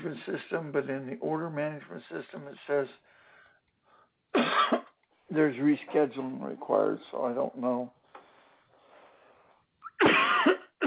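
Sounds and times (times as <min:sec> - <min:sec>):
speech: 0:00.0 - 0:03.2, 0:04.3 - 0:08.0
faint breath: 0:03.0 - 0:04.2, 0:08.0 - 0:09.7
harsh cough: 0:04.3 - 0:05.0, 0:09.8 - 0:10.8.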